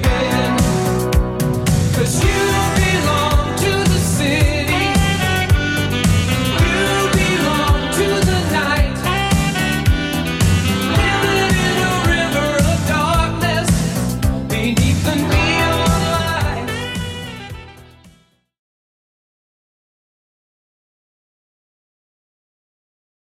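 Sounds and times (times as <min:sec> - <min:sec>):
80s drum machine beat: 0:00.0 - 0:17.8.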